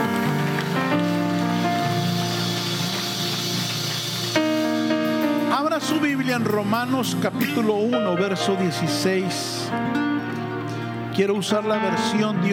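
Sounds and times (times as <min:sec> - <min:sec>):
audience applause: 0:00.0 - 0:06.6
speech: 0:05.8 - 0:10.1, 0:11.2 - 0:12.5.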